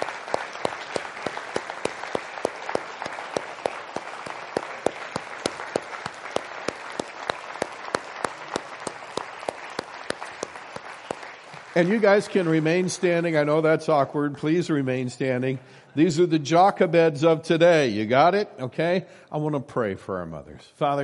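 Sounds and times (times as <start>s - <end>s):
large indoor crowd applauding mothers: 0.0s - 13.2s
speech: 11.8s - 21.0s.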